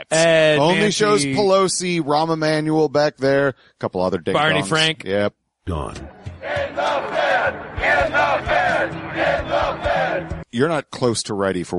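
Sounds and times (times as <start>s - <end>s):
speech: 0.0s - 6.9s, 7.5s - 11.7s
crowd of people screaming and shouting: 6.3s - 10.4s.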